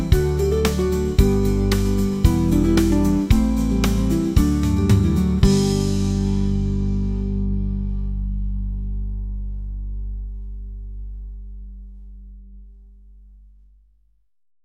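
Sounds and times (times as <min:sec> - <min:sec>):
dreamy acoustic guitar: 0:00.0 - 0:10.2.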